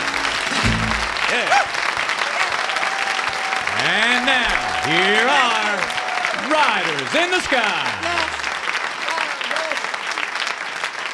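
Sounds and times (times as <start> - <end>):
audience applause: 0.0 - 11.1
faint whoops: 2.3 - 6.4
speech: 6.5 - 8.0.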